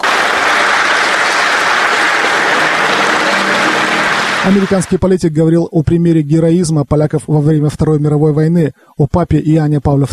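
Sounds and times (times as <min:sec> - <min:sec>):
applause ovation from students: 0:00.0 - 0:05.0
speech: 0:04.4 - 0:10.1.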